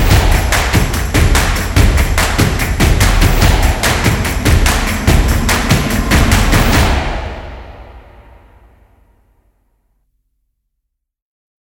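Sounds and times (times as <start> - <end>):
energetic stomp drum percussion: 0.0 - 8.0.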